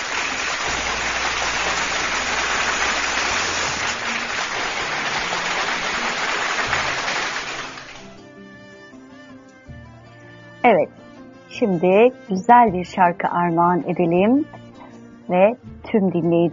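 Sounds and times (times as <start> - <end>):
crowd applause: 0.0 - 8.2
speech: 11.6 - 14.6, 15.3 - 16.5.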